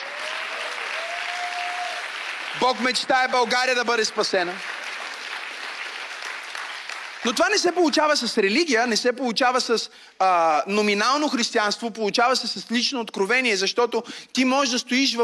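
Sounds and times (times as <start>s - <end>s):
audience applause: 0.0s - 8.0s
speech: 2.6s - 4.7s, 7.2s - 15.2s.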